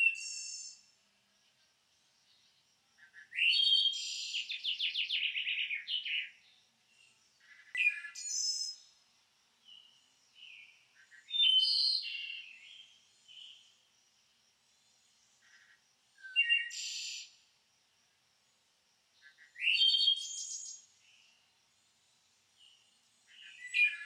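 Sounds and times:
morning birds singing: 2.3 - 8.9, 9.6 - 13.8, 14.9 - 17.3, 19.2 - 21.4, 22.6 - 24.0.

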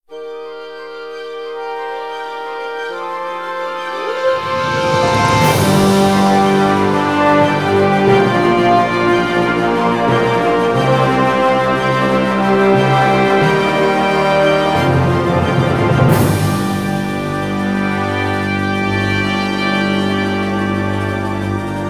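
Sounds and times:
victory scene music: 0.3 - 21.8.

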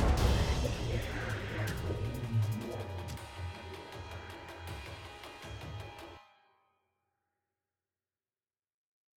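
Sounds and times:
boss combat death sound: 0.2 - 3.3.

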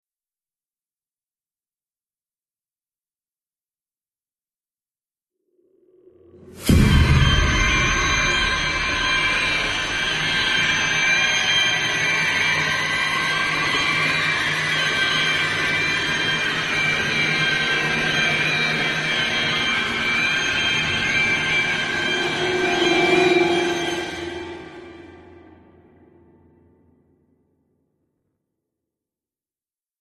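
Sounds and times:
creepy sound: 6.4 - 26.4.

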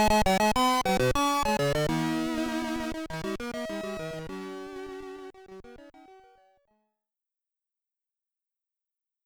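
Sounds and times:
SID chip stereo music: 0.0 - 6.3.

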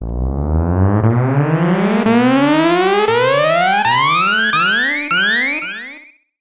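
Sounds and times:
escape teleport sound effect: 0.6 - 6.1.

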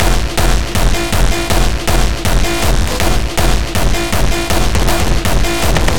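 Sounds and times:
beat loop: 0.0 - 5.9.

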